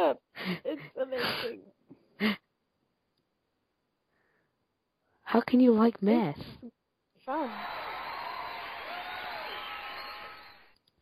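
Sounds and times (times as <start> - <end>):
speech: 0.0 - 1.6, 2.2 - 2.4, 5.3 - 6.6, 7.3 - 7.8
canned audience cheering set off by a button: 7.3 - 10.8.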